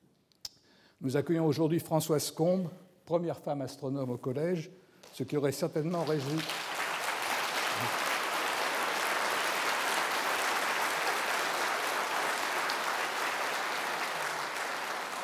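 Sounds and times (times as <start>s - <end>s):
speech: 1.0s - 6.6s
audience applause: 5.8s - 15.2s.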